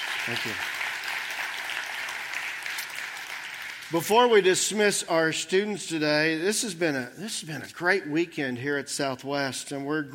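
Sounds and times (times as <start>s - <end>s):
audience applause: 0.0s - 4.1s
speech: 0.2s - 0.8s, 3.9s - 10.1s.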